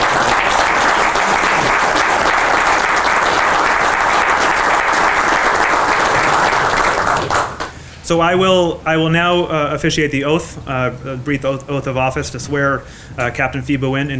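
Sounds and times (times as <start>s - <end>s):
applause: 0.0s - 7.8s
speech: 8.1s - 14.1s.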